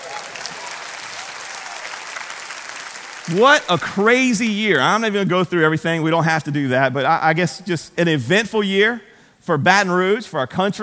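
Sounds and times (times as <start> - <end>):
audience clapping: 0.0 - 4.5
speech: 3.3 - 10.8.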